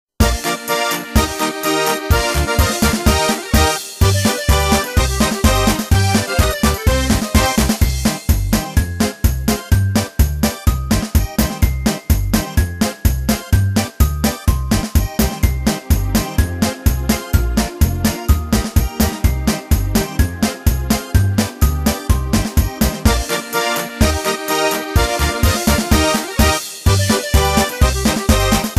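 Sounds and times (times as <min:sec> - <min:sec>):
instrumental backing track for a New Year song: 0:00.2 - 0:28.7.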